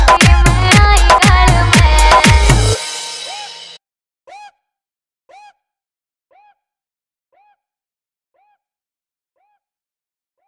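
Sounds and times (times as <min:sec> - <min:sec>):
Haryanvi DJ dance remix music: 0:00.0 - 0:03.8.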